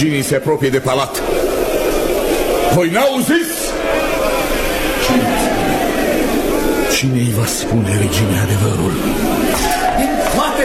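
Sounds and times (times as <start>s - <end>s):
speech: 0.0s - 1.5s, 2.7s - 4.1s, 7.0s - 10.6s
crowd of men gathering and shouting: 1.6s - 7.0s, 7.9s - 10.6s.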